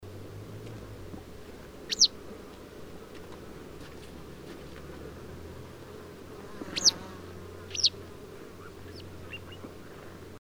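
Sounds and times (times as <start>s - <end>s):
low background noise: 0.0s - 10.4s
citrine wagtail calls: 1.8s - 2.2s, 6.6s - 10.0s.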